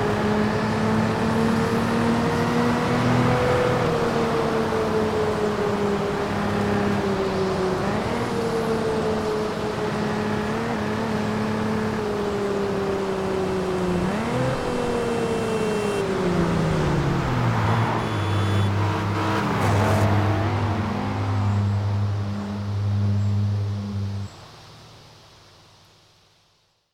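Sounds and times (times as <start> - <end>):
Nissan 350Z Nismo S-tune engine: 0.0 - 25.4.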